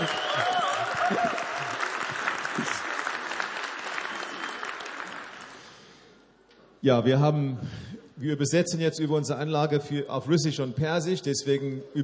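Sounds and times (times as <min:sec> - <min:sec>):
congregation clapping at a church service: 0:00.0 - 0:05.9
speech: 0:06.8 - 0:12.0.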